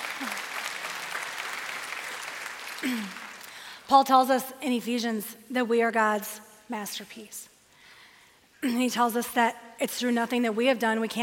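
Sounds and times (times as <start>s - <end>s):
audience applause: 0.0s - 3.7s
speech: 2.8s - 3.2s, 3.9s - 7.5s, 8.6s - 11.2s.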